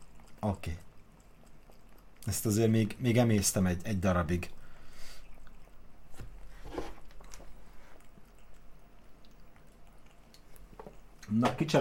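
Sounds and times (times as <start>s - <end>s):
cat lapping water in front of a computer monitor on a desk: 0.0s - 11.3s
low hum: 0.0s - 11.7s
speech: 0.4s - 0.9s, 2.3s - 4.6s, 11.3s - 11.7s.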